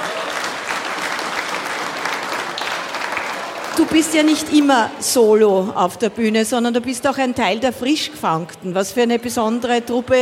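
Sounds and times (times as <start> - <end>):
audience applause: 0.0 - 4.9
speech: 3.8 - 10.1.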